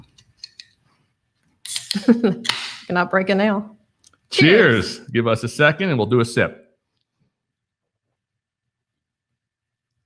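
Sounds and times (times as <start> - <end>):
beer can opening: 1.6 - 2.9
speech: 2.0 - 6.6.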